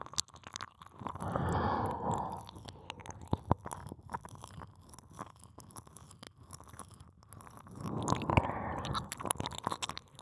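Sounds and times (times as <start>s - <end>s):
ear licking sounds on left and right simultaneously: 1.1s - 3.9s, 7.8s - 9.9s.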